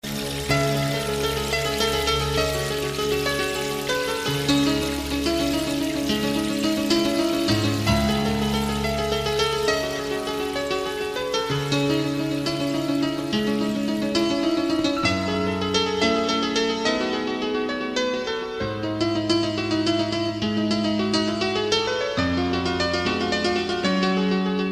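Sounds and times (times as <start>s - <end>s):
Iraqi piano player playing: 0.0s - 24.6s.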